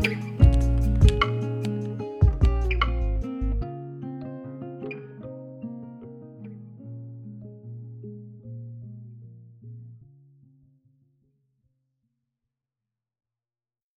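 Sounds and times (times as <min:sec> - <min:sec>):
lofi hip hop: 0:00.0 - 0:03.6.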